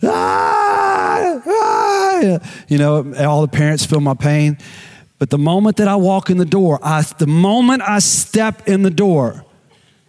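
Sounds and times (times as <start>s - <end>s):
person imitating toddler screaming at night: 0.0s - 2.4s
speech: 2.3s - 9.5s.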